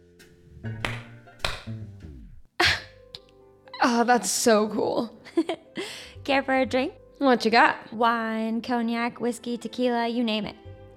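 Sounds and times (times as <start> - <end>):
speech: 0.6 - 1.0, 3.9 - 10.9
hand claps: 0.8 - 1.8.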